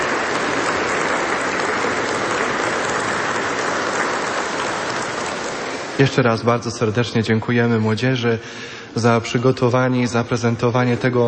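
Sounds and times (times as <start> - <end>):
audience applause: 0.0 - 6.1
speech: 6.0 - 11.2.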